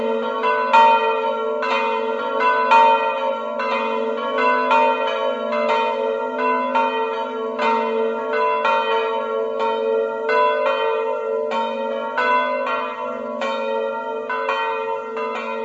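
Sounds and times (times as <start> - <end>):
bells in Zeglianutto: 0.0 - 15.6.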